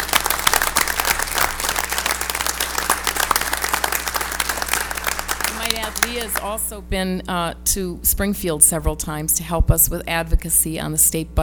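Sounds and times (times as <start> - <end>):
audience applause: 0.0 - 6.5
speech: 6.0 - 11.4.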